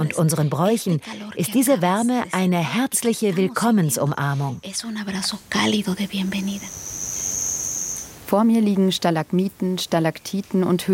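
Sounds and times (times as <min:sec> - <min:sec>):
speech: 0:00.0 - 0:07.0, 0:08.3 - 0:10.9
faint hollow hiss: 0:04.2 - 0:10.9
soft voice speaking: 0:05.1 - 0:06.5
cricket chirping in a cave: 0:05.2 - 0:08.3.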